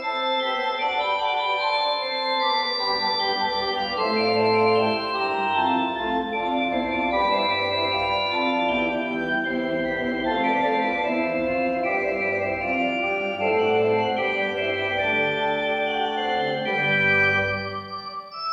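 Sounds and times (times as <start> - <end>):
fugue in C major: 0.1 - 18.4.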